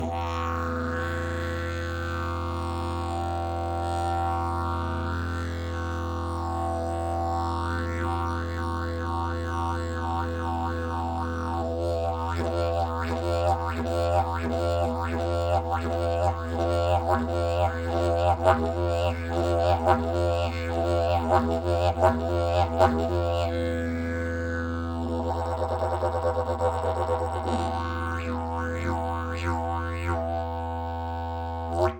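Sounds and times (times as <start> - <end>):
didgeridoo: 0.0 - 31.9.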